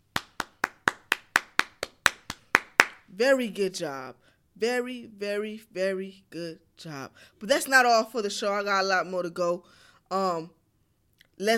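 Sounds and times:
hand clapping: 0:00.0 - 0:03.1
speech: 0:03.2 - 0:10.6, 0:11.4 - 0:11.5.

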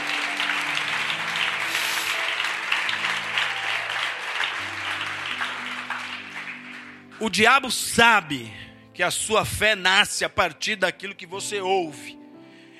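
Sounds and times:
crowd applause: 0:00.0 - 0:07.4
speech: 0:07.2 - 0:12.2.

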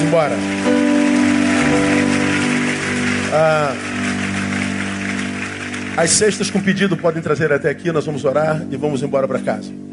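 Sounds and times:
audience applauding: 0:00.0 - 0:07.4
speech: 0:00.1 - 0:01.0, 0:03.3 - 0:04.3, 0:06.0 - 0:09.9.

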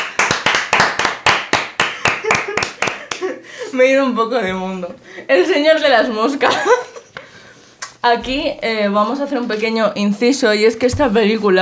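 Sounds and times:
hands clapping: 0:00.0 - 0:03.3
laughter: 0:02.0 - 0:03.8, 0:06.4 - 0:07.2
speech: 0:03.7 - 0:06.9, 0:08.0 - 0:11.5.

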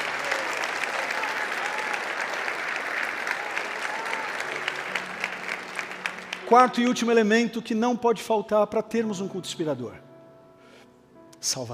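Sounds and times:
congregation applauding during a church service: 0:00.0 - 0:07.8
speech: 0:06.5 - 0:10.1, 0:11.4 - 0:11.7.

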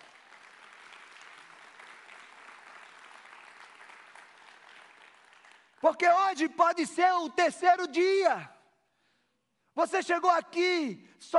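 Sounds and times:
audience applauding: 0:00.0 - 0:05.9
speech: 0:05.8 - 0:08.5, 0:09.8 - 0:11.3.

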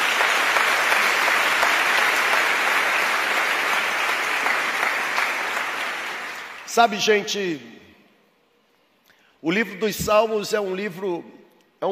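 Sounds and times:
audience applauding: 0:00.0 - 0:06.8
speech: 0:06.8 - 0:07.8, 0:09.4 - 0:11.8.

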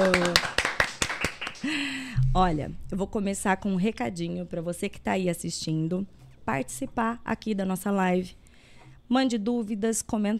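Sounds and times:
audience round of applause: 0:00.0 - 0:01.7
speech: 0:02.3 - 0:08.4, 0:09.1 - 0:10.3.

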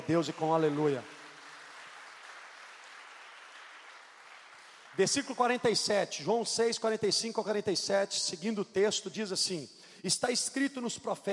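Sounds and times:
audience clapping: 0:00.0 - 0:05.9
speech: 0:00.1 - 0:01.2, 0:05.0 - 0:11.3.

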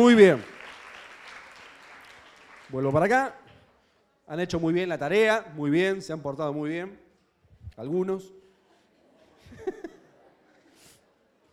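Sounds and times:
speech: 0:00.0 - 0:00.5, 0:02.7 - 0:03.4, 0:04.3 - 0:07.0, 0:07.8 - 0:08.4
audience applause: 0:00.0 - 0:03.1
laughter: 0:08.8 - 0:10.9.

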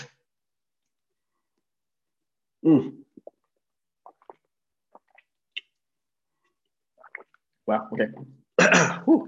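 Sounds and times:
speech: 0:02.6 - 0:03.0, 0:07.7 - 0:09.2
person sipping cold water: 0:02.8 - 0:07.6.

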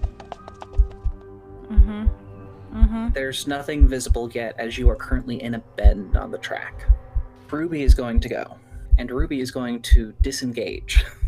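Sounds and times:
horse's hooves galloping: 0:00.0 - 0:01.2
speech: 0:02.9 - 0:11.2.

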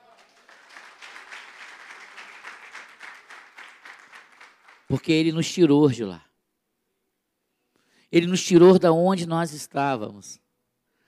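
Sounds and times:
audience applause: 0:00.0 - 0:05.0
speech: 0:04.9 - 0:06.3, 0:08.1 - 0:10.4.

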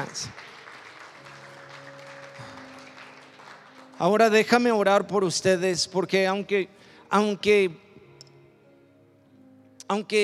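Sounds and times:
speech: 0:00.0 - 0:00.4, 0:04.0 - 0:07.8, 0:09.9 - 0:10.2
audience applauding: 0:00.0 - 0:04.6.

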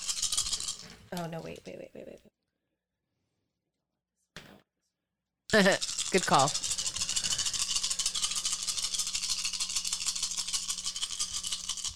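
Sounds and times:
speech: 0:01.1 - 0:02.4, 0:05.5 - 0:06.7
dice rolling: 0:05.5 - 0:11.9.

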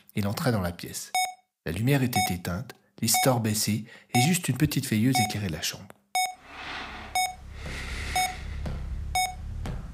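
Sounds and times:
speech: 0:00.2 - 0:06.0
medical monitor beeping in hospital room: 0:01.1 - 0:01.5, 0:02.1 - 0:02.4, 0:03.1 - 0:03.4, 0:04.2 - 0:04.4, 0:05.1 - 0:05.4, 0:06.2 - 0:06.4, 0:07.0 - 0:07.4, 0:08.2 - 0:08.4, 0:09.1 - 0:09.4.

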